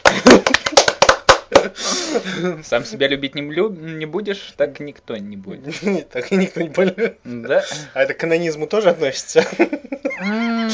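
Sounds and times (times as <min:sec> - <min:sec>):
people clapping for the sponsors at a drinking gathering: 0:00.0 - 0:01.8
speech: 0:01.6 - 0:10.7.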